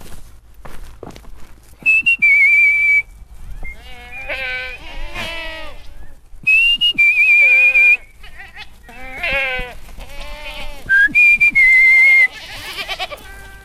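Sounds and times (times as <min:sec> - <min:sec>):
person whistling: 0:01.8 - 0:03.8, 0:06.5 - 0:08.1, 0:10.9 - 0:12.4
goats bleating: 0:03.6 - 0:06.0, 0:07.4 - 0:11.0, 0:12.1 - 0:13.6.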